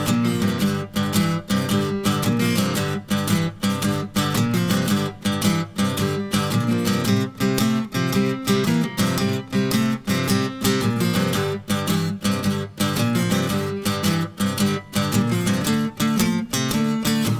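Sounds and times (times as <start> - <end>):
guitar playing: 0.0 - 17.3.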